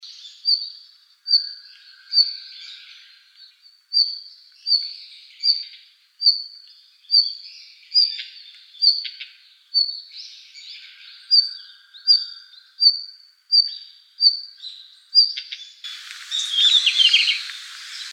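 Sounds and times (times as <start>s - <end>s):
red-flanked bluetail calling: 16.1s - 18.1s.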